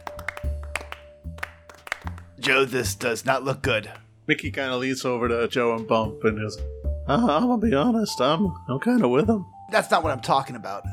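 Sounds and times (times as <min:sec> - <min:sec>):
sparse smattering of applause: 0:00.0 - 0:02.4
speech: 0:02.5 - 0:10.9.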